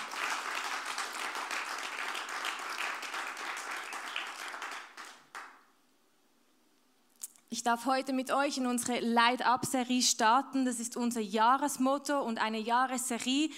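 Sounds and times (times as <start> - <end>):
audience applause: 0.0 - 5.6
speech: 7.5 - 13.5.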